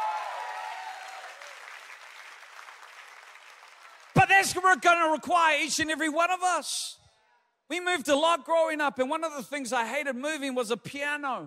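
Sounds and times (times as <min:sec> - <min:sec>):
audience applause: 0:00.0 - 0:04.3
speech: 0:04.4 - 0:07.0, 0:07.7 - 0:11.4.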